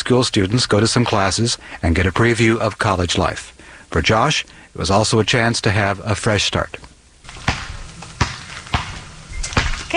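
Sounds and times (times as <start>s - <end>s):
faint steady noise: 0.0s - 9.9s
speech: 0.1s - 6.9s
basketball bouncing during layup practice at Bennington College in Vermont: 7.3s - 9.9s.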